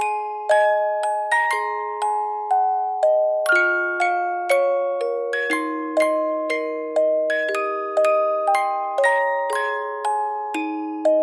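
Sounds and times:
Christmas song on a music box from a game: 0.0s - 11.2s.

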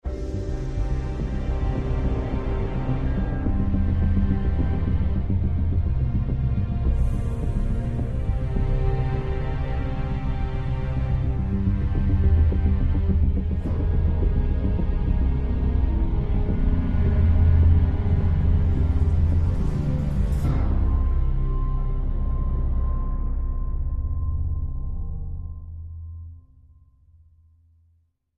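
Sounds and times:
tense music: 0.1s - 26.4s.

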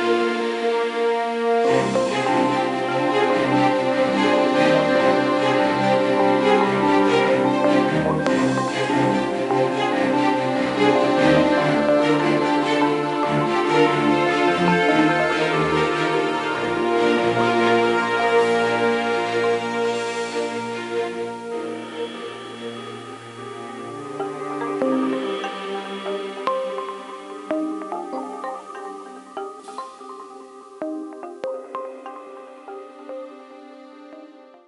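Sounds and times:
game background music: 0.0s - 32.3s.

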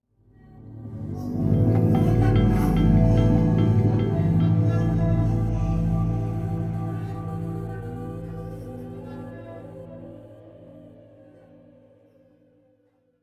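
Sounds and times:
demons musical stinger: 0.8s - 10.1s.

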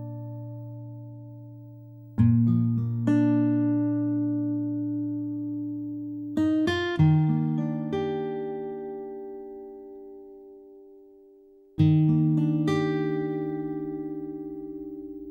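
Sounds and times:
guitar duet loop in E-flat major: 0.0s - 15.2s.

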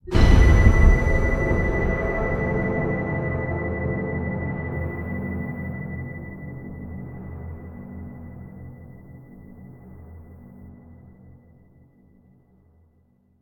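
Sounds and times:
tense music sting: 0.0s - 10.6s.

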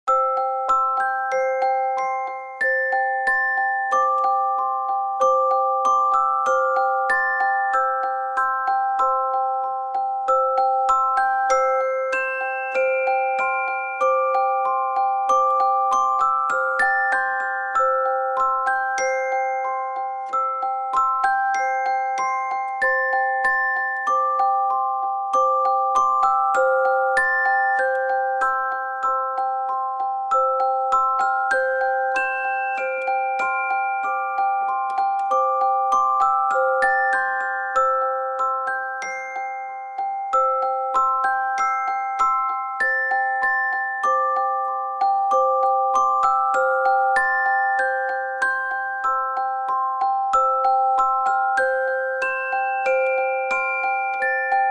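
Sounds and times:
lullaby music: 0.0s - 54.6s.

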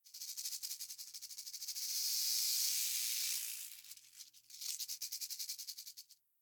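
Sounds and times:
rattlesnake rattling: 0.0s - 6.2s.

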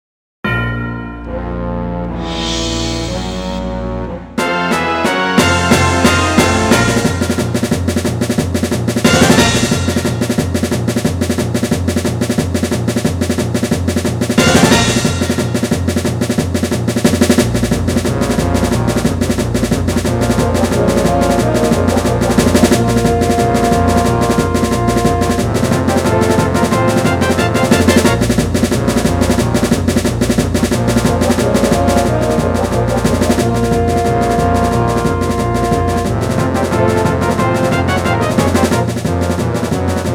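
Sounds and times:
quest battle music: 0.4s - 40.1s.

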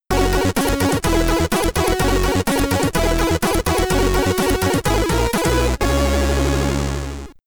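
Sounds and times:
Commodore 64 SID stereo chiptune music: 0.1s - 7.4s.

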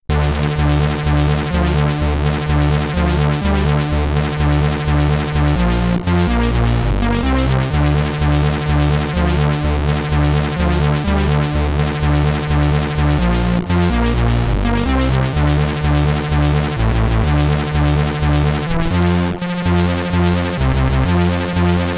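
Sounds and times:
SID chip stereo music: 0.1s - 21.9s.

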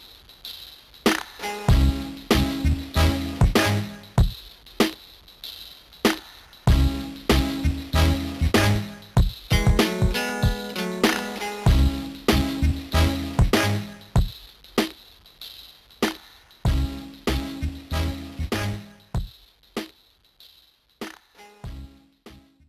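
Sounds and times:
background music: 1.4s - 4.2s, 6.7s - 14.2s, 16.7s - 19.1s, 21.6s - 22.5s.

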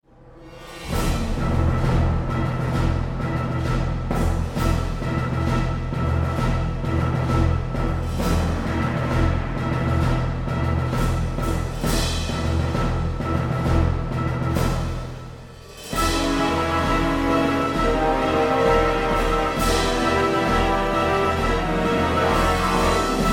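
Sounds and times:
battle music: 0.4s - 23.3s.

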